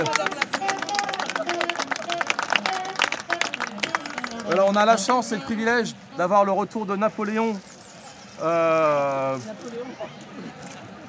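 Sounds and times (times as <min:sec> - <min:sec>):
crowd applauding: 0:00.0 - 0:05.3
speech: 0:04.7 - 0:07.7, 0:08.4 - 0:10.6.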